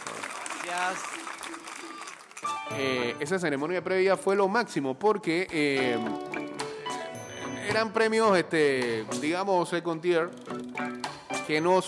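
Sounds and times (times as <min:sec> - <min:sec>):
audience applause: 0:00.0 - 0:02.8
speech: 0:00.7 - 0:06.4, 0:07.7 - 0:10.9, 0:11.5 - 0:11.8.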